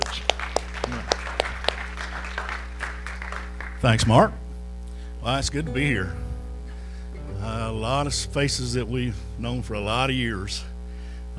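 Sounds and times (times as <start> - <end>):
church congregation at Liberty First Baptist Church clapping to welcome guests: 0.0 - 4.1
steady low hum: 0.0 - 11.3
speech: 3.8 - 4.4, 5.2 - 6.3, 7.4 - 10.7.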